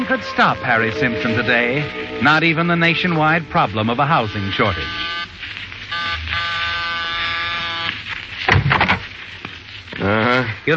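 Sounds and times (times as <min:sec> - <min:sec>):
speech: 0:00.1 - 0:06.0, 0:10.0 - 0:10.7
door buzzer buzzing: 0:04.4 - 0:05.3, 0:05.9 - 0:07.9.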